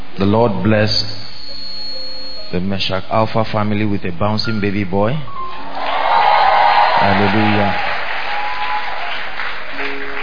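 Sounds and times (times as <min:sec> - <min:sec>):
speech: 0:00.2 - 0:01.2, 0:02.5 - 0:05.7, 0:07.0 - 0:07.9
faint sustained tone: 0:00.3 - 0:03.3
congregation clapping during a church service: 0:05.6 - 0:10.2.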